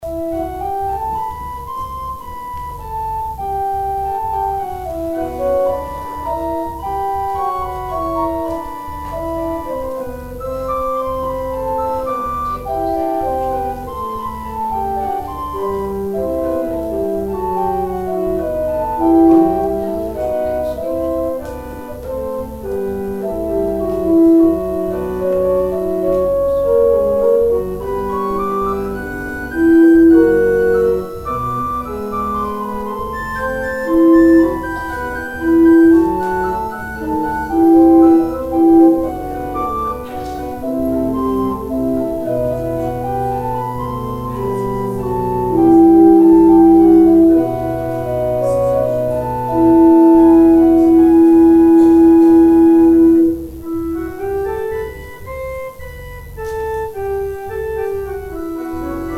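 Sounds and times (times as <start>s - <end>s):
organ interlude: 0.0s - 59.1s.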